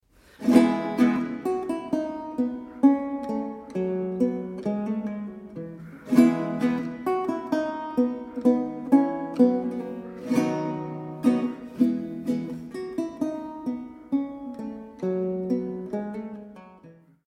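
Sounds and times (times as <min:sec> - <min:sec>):
minuet: 0:00.2 - 0:17.2.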